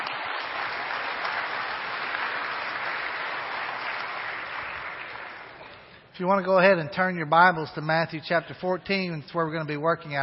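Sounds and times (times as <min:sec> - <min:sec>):
audience applause: 0:00.0 - 0:05.8
speech: 0:06.2 - 0:10.2.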